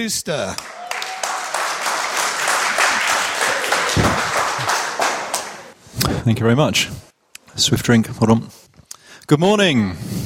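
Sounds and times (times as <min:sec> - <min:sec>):
speech: 0:00.0 - 0:00.8, 0:06.3 - 0:08.6, 0:09.3 - 0:10.1
audience applauding a speaker: 0:00.5 - 0:05.8
low thump: 0:04.0 - 0:04.3.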